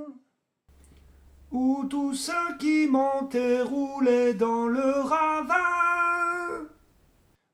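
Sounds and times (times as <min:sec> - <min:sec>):
high voices of a choir: 0:00.8 - 0:06.8.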